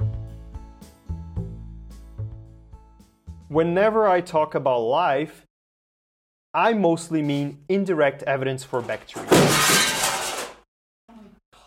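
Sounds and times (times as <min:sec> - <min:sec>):
speech: 0:03.5 - 0:05.5, 0:06.6 - 0:09.7
picture frame falling and smashing on floor: 0:09.1 - 0:10.6.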